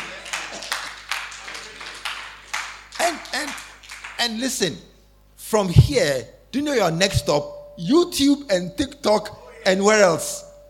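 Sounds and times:
audience clapping: 0:00.0 - 0:04.4
speech: 0:04.2 - 0:04.9, 0:05.5 - 0:10.5
voices calling out: 0:09.3 - 0:09.9.

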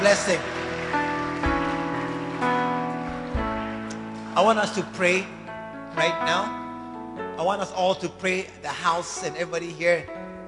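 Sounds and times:
audience clapping: 0:00.0 - 0:05.3
speech: 0:00.1 - 0:01.0, 0:04.4 - 0:06.6, 0:07.4 - 0:10.4.

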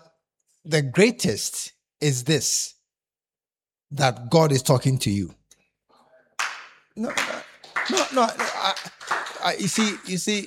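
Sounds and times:
speech: 0:00.6 - 0:02.8, 0:03.9 - 0:05.4, 0:07.0 - 0:07.3, 0:07.9 - 0:10.4
audience clapping: 0:06.4 - 0:10.4.

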